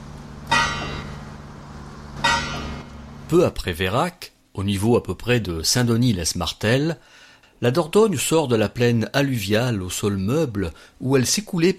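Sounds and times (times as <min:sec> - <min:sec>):
low steady hum: 0:00.0 - 0:11.7
church bells tolling: 0:00.4 - 0:01.5, 0:02.1 - 0:03.2
speech: 0:03.3 - 0:11.7.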